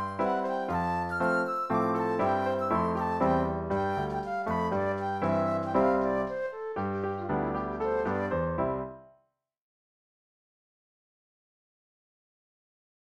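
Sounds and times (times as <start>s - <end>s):
mazurka: 0.0s - 8.7s.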